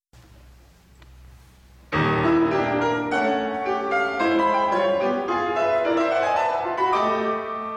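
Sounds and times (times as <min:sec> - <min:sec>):
piano sonata: 0:01.7 - 0:07.7.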